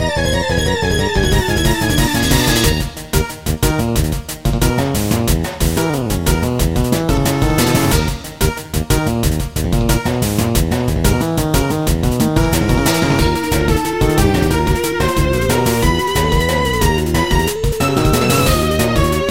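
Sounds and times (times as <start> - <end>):
wild battle music: 0.0 - 19.2.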